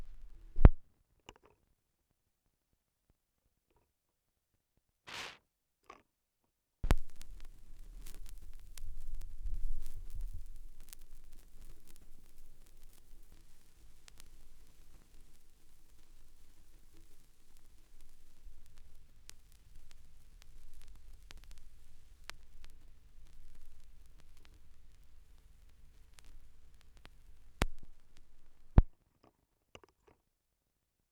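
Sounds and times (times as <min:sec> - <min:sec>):
vinyl record noise: 0:00.0 - 0:00.8, 0:05.1 - 0:05.4, 0:06.8 - 0:28.9.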